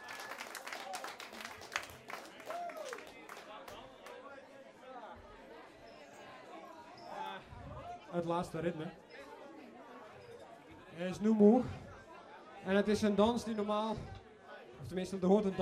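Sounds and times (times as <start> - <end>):
applause for dancers: 0.0 - 4.2
speech: 8.1 - 9.0, 11.0 - 11.8, 12.6 - 14.2, 14.8 - 15.5.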